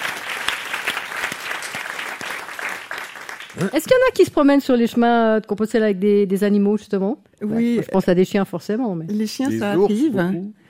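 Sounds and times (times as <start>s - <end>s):
audience applause: 0.0s - 3.8s
speech: 3.6s - 10.6s.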